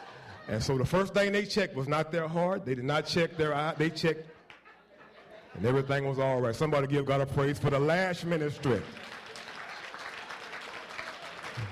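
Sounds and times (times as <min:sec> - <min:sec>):
laughter: 0:00.0 - 0:01.1, 0:02.3 - 0:09.0, 0:11.4 - 0:11.6
speech: 0:00.5 - 0:04.4, 0:05.6 - 0:09.1
crowd clapping: 0:04.4 - 0:04.9, 0:08.2 - 0:11.6.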